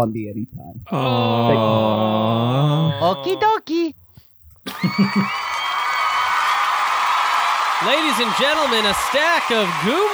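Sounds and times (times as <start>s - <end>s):
speech: 0.0s - 4.0s, 4.7s - 5.7s, 7.8s - 10.1s
laughter: 1.0s - 3.5s, 4.7s - 10.1s
audience applause: 4.7s - 10.1s.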